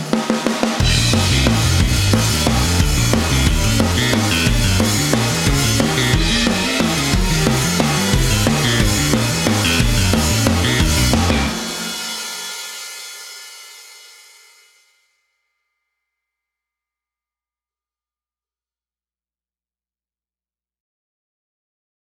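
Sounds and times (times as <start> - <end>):
karaoke singing: 0.8 - 12.0.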